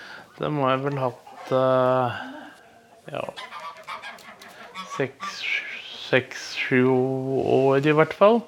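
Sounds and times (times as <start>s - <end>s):
Smålen geese honking: 0.0s - 6.8s
speech: 0.4s - 2.4s, 3.1s - 3.5s, 5.0s - 5.5s, 6.1s - 8.4s.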